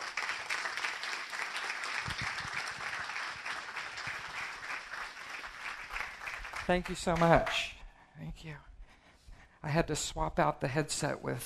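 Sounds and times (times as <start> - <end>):
audience applause: 0.0 - 7.5
speech: 6.7 - 8.7, 9.6 - 11.4.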